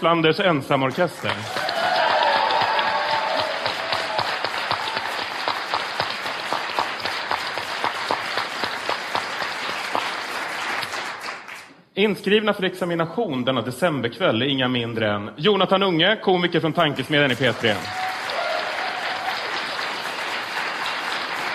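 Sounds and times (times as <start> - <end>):
speech: 0.0 - 1.7, 12.0 - 18.0
audience applause: 0.8 - 11.6, 17.2 - 21.5.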